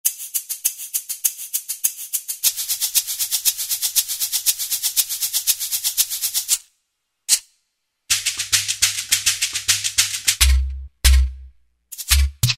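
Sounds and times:
shaker: 0:00.0 - 0:06.7, 0:08.1 - 0:12.5.

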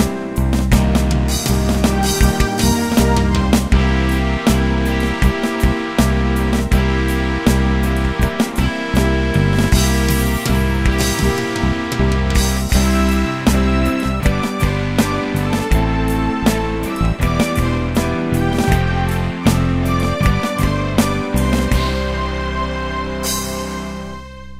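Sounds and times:
Britpop preset style music: 0:00.0 - 0:24.5.

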